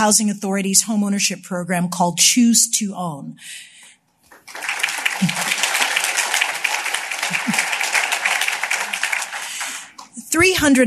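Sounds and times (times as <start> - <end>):
speech: 0.0 - 3.7, 4.5 - 5.5, 10.4 - 10.8
audience applause: 4.3 - 10.1
laughter: 4.6 - 9.9.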